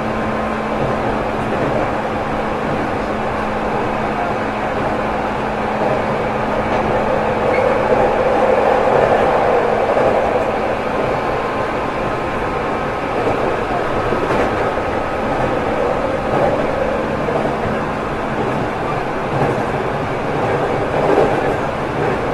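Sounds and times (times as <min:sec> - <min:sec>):
Saikyo Kawagoe 205 train: 0:00.0 - 0:22.3.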